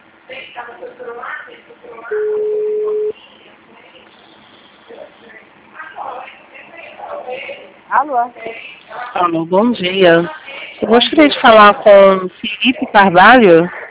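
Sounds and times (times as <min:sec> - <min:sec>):
speech: 0:00.3 - 0:02.6, 0:07.9 - 0:13.8
telephone ringing tone over a phone line: 0:02.1 - 0:03.1.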